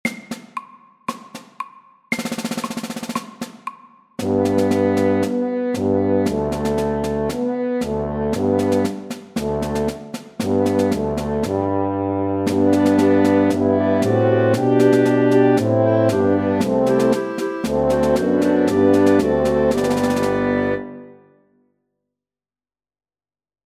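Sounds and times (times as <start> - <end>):
march music: 4.2 - 21.3.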